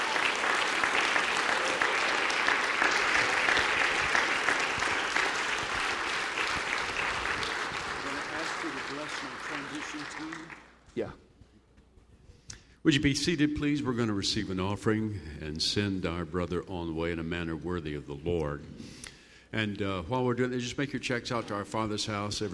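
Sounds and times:
audience clapping: 0.0s - 10.9s
speech: 12.9s - 22.5s.

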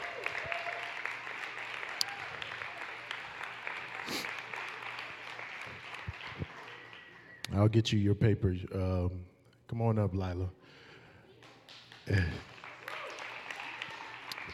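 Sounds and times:
applause: 0.0s - 7.5s, 11.3s - 14.5s
speech: 7.6s - 10.6s, 12.1s - 12.4s.

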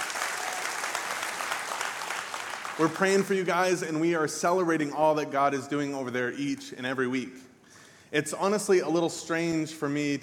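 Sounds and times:
church congregation applauding during a service: 0.0s - 3.8s
speech: 2.8s - 7.5s, 8.1s - 10.2s.

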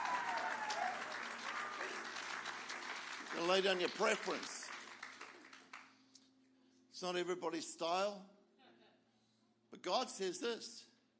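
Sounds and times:
people shouting and cheering: 0.0s - 2.1s
audience clapping: 0.0s - 6.2s
speech: 3.4s - 4.6s, 7.0s - 8.4s, 9.8s - 10.9s.

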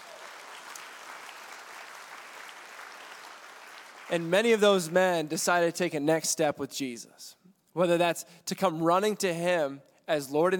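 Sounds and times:
audience clapping: 0.0s - 5.0s
speech: 4.1s - 10.5s.

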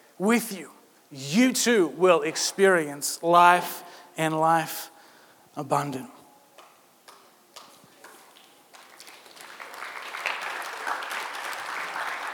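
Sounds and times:
speech: 0.2s - 4.9s, 5.6s - 6.2s
audience clapping: 7.6s - 12.3s.

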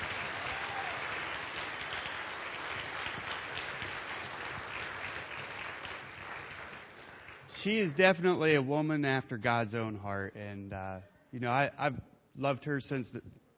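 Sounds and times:
audience applause: 0.0s - 7.9s
speech: 7.6s - 13.4s.

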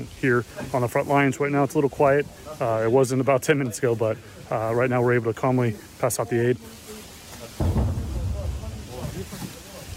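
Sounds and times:
speech: 0.0s - 6.8s
artillery fired in the distance near a front line: 7.6s - 9.3s.

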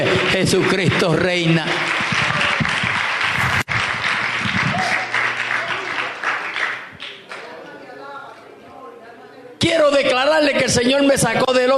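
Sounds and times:
audience applause: 0.0s - 7.6s
speech: 0.3s - 2.0s, 10.6s - 11.7s.

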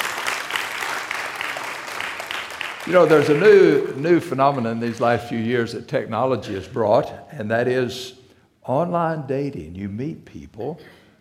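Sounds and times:
church congregation applauding to welcome first-time visitors: 0.0s - 5.8s
speech: 2.8s - 11.0s.

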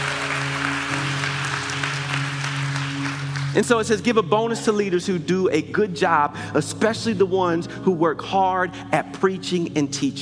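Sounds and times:
audience clapping: 0.0s - 4.8s
sustained low musical tone: 0.0s - 10.2s
speech: 3.6s - 10.2s.

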